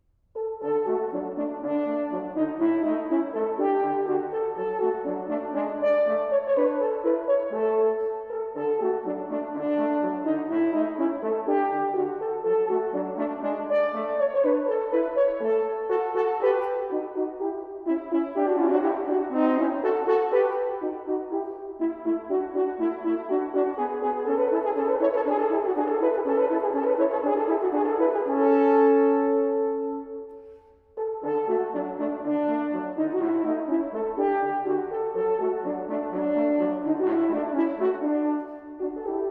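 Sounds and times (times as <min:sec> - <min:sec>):
two horns playing an allegro: 0:00.4 - 0:39.2.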